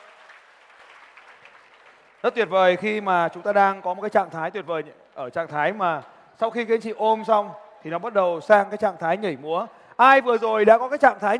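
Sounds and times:
audience applause: 0.0s - 2.3s
speech: 2.2s - 11.3s.

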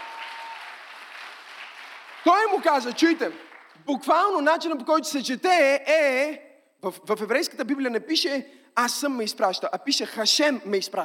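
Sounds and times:
audience applause: 0.0s - 3.8s
speech: 2.2s - 11.0s.

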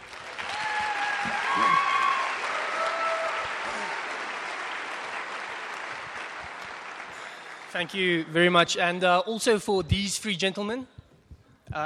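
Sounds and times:
audience clapping hands: 0.0s - 8.3s
speech: 7.8s - 11.0s.

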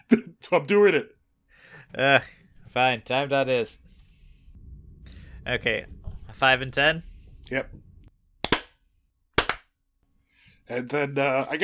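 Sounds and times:
speech: 0.1s - 1.2s, 1.9s - 3.8s, 5.4s - 7.8s, 10.7s - 11.6s
hand claps for syncing podcast audio: 8.4s - 8.8s, 9.4s - 9.7s.

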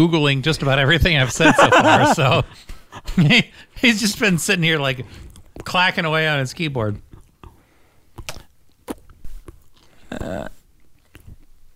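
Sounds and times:
speech: 0.0s - 7.0s, 10.1s - 10.6s
laughter: 1.2s - 3.4s
chewing chocolate chip cookies: 5.2s - 5.8s, 6.9s - 11.7s.

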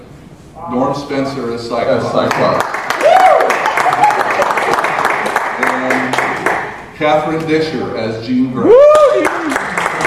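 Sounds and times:
speech: 0.6s - 2.8s, 7.0s - 9.6s
audience applauding: 2.2s - 6.7s, 9.0s - 10.0s.

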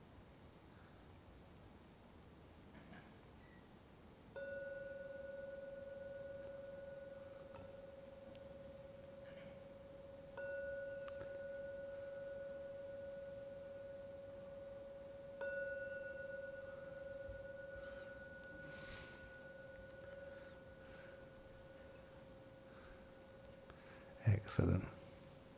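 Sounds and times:
gong ringing: 4.4s - 24.0s
speech: 24.5s - 25.0s.

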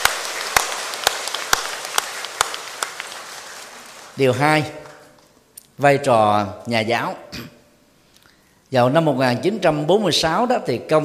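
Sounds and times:
loud applause: 0.0s - 5.2s
speech: 4.2s - 4.8s, 5.8s - 7.6s, 8.7s - 11.0s.

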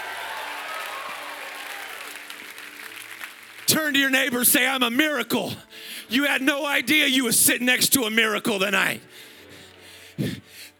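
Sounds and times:
audience cheering: 0.0s - 3.7s
audience clapping: 0.0s - 4.8s
speech: 3.7s - 9.3s.

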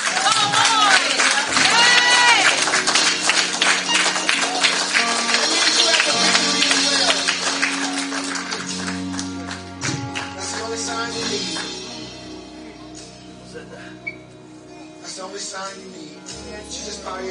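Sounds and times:
raised voices calling out: 0.0s - 8.4s
audience clapping: 0.0s - 12.0s
sustained low musical tone: 0.6s - 17.3s.

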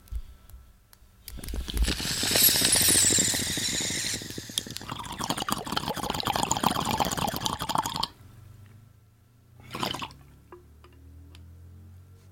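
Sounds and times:
water bubbling in a bong: 1.4s - 8.2s, 9.7s - 10.2s.

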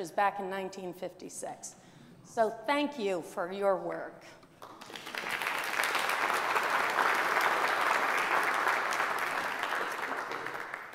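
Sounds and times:
speech: 0.0s - 5.0s
audience applause: 4.6s - 10.9s.

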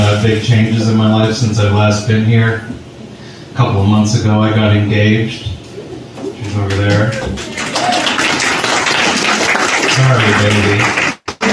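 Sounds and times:
speech: 0.0s - 2.9s, 3.6s - 5.6s, 6.4s - 7.7s, 10.0s - 11.0s
audience applause: 6.4s - 11.5s.

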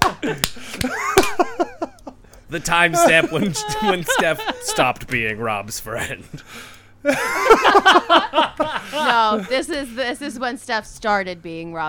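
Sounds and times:
hand claps: 0.0s - 1.5s
laughter: 0.0s - 10.1s
speech: 2.5s - 11.8s.

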